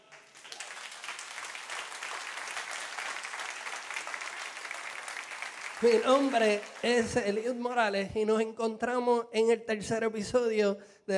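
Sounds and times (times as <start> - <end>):
crowd applauding: 0.0 - 7.6
speech: 5.8 - 11.1.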